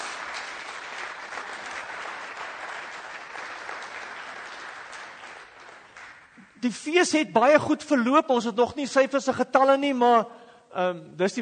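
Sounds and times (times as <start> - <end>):
audience applause: 0.0 - 6.4
speech: 6.6 - 11.3.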